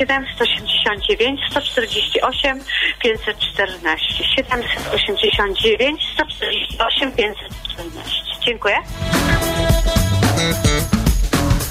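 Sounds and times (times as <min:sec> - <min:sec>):
speech: 0:00.0 - 0:10.9
radio playing loudly through a phone line: 0:00.2 - 0:08.6.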